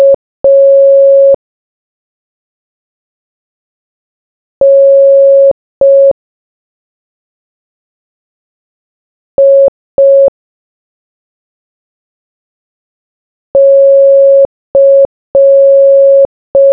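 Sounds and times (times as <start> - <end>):
morse code beeps: 0.0 - 1.4, 4.6 - 6.2, 9.4 - 10.3, 13.6 - 16.7.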